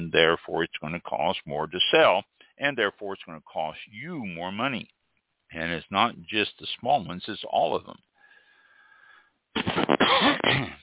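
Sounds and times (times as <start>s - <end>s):
speech: 0.1s - 8.1s, 9.5s - 10.8s
person coughing: 9.6s - 10.8s.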